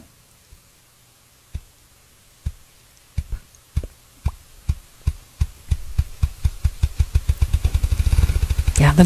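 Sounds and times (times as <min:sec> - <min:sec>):
ruffed grouse drumming: 0:03.2 - 0:09.0.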